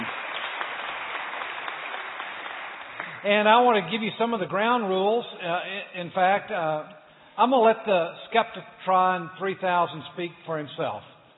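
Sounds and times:
audience applauding guests onto the stage: 0:00.0 - 0:03.8
speech: 0:03.2 - 0:11.1.

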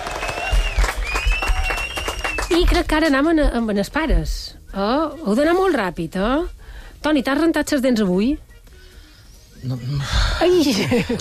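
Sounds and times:
audience applause in a children's show: 0:00.0 - 0:02.6
speech: 0:02.6 - 0:08.4, 0:09.6 - 0:11.1.

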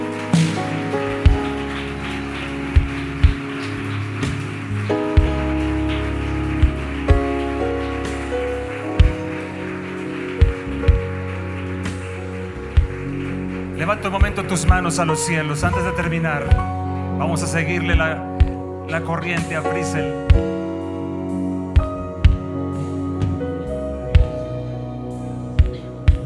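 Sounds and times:
crowd audience applauding: 0:00.0 - 0:26.2
speech: 0:13.9 - 0:18.3, 0:18.9 - 0:20.6.

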